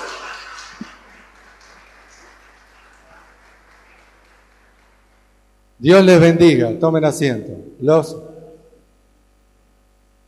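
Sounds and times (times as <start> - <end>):
audience applause: 0.0 - 5.3
speech: 5.8 - 8.3.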